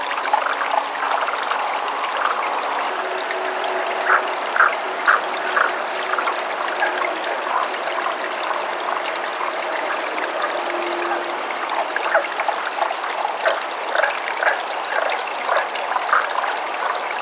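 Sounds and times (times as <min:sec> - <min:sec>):
stream water flowing: 0:00.0 - 0:17.1
Tago's brown frog clucking: 0:04.0 - 0:07.7, 0:11.8 - 0:17.0.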